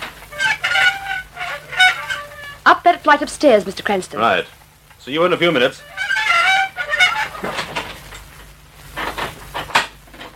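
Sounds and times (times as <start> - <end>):
door creaking open: 0.0 - 2.7, 5.8 - 8.3
speech: 3.0 - 5.9.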